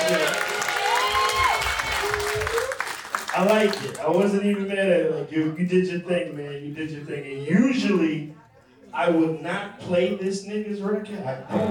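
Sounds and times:
crowd applause: 0.0s - 4.3s
speech: 3.4s - 11.6s.

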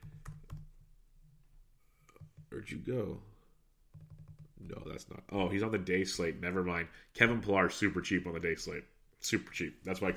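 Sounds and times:
typing on a computer keyboard: 0.0s - 0.9s, 3.9s - 4.8s
speech: 2.6s - 3.3s, 4.7s - 10.1s.

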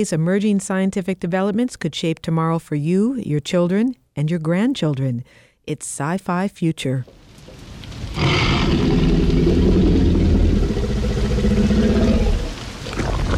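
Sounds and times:
speech: 0.0s - 7.6s
menacing growl of a hungry T-Rex: 8.1s - 13.2s.

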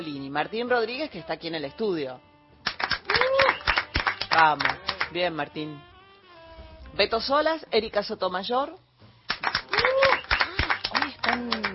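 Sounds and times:
speech: 0.0s - 2.3s, 4.4s - 5.9s, 6.9s - 8.8s, 11.4s - 11.7s
small group clapping in the studio: 2.6s - 5.2s, 9.3s - 11.7s
voices cheering and whooping: 9.7s - 11.7s.

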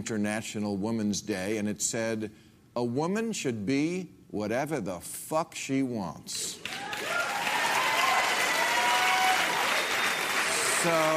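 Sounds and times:
speech: 0.0s - 6.9s, 10.8s - 11.1s
audience applause: 6.6s - 11.1s.

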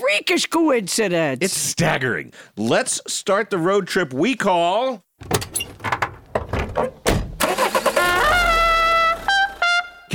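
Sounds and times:
speech: 0.2s - 5.9s
clunks and rattles: 5.2s - 7.9s
car engine starting and revving: 7.4s - 9.6s.

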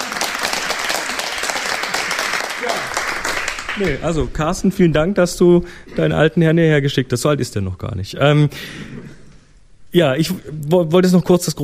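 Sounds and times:
audience applause: 0.0s - 4.1s
speech: 3.8s - 9.1s, 9.9s - 11.6s.

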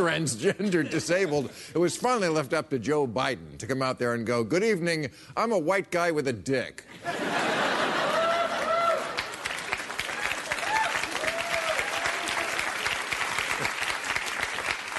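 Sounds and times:
speech: 0.0s - 7.7s
laughter: 0.3s - 1.6s, 6.9s - 9.4s
crowd applauding: 7.7s - 14.9s
people whooping and cheering: 7.9s - 13.0s.

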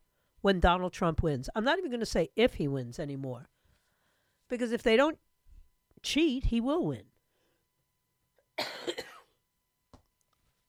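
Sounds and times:
speech: 0.4s - 3.5s, 4.5s - 5.2s, 6.0s - 7.1s
person coughing: 8.6s - 9.4s.

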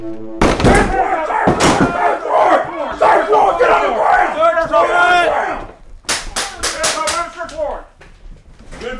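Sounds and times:
SWAT team crashing through door: 0.4s - 2.9s
men shouting commands: 0.6s - 7.7s.

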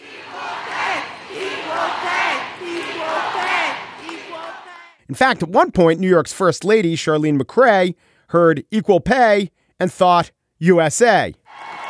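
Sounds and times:
parade crowd chanting cheer: 0.0s - 5.0s, 11.5s - 11.8s
speech: 5.1s - 11.8s.

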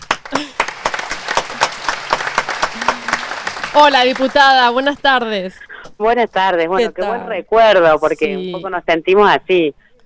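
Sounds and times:
studio audience clapping: 0.0s - 5.4s
speech: 0.3s - 0.6s, 3.8s - 9.8s.

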